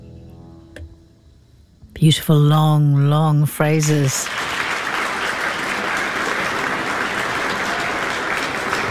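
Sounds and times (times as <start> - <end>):
speech: 2.0 - 4.4
audience applause: 4.0 - 8.8.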